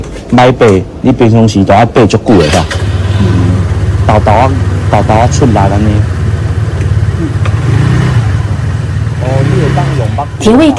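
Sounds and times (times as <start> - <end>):
speech: 0.3 - 3.4, 4.1 - 6.1, 7.2 - 7.5, 9.2 - 10.7
scooter engine as an elderly woman rides off: 2.4 - 10.7.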